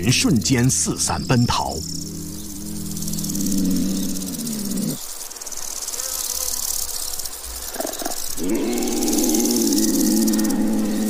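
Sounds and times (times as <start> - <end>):
speech: 0.0 - 2.0
female leopard mating call roar: 1.6 - 5.1, 7.6 - 11.0.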